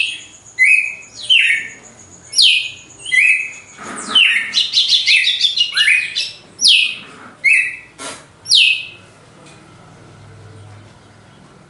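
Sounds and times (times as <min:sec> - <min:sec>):
Red-cowled cardinal whistling: 0:00.0 - 0:07.9, 0:08.5 - 0:09.0.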